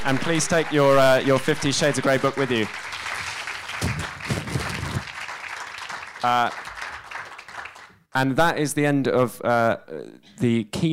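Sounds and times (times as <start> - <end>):
speech: 0.0 - 3.0, 6.2 - 6.7, 8.2 - 10.9
audience applause: 0.0 - 8.0.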